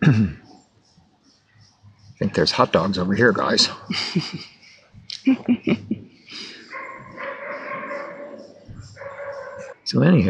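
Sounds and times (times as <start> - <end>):
speech: 0.1 - 0.4, 2.2 - 4.6, 5.2 - 6.5, 9.9 - 10.2
dogs barking across a lake: 2.1 - 4.5, 6.3 - 9.9
laughter: 2.2 - 9.7.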